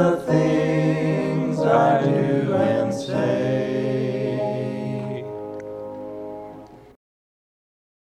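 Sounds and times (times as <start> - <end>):
hymn: 0.0 - 6.3.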